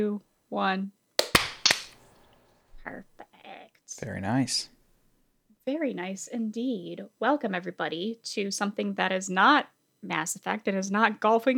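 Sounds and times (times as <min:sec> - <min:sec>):
speech: 0:00.0 - 0:01.0, 0:02.8 - 0:03.2, 0:04.0 - 0:04.7, 0:05.6 - 0:11.5
soft hiss: 0:00.0 - 0:11.5
single hand clap for sync: 0:01.2 - 0:02.2.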